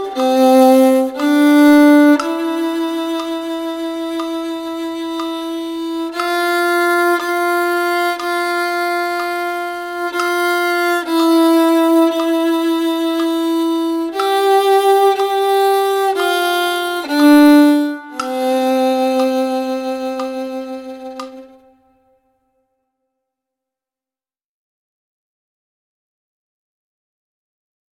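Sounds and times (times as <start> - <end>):
Christmas song: 0.0 - 22.0.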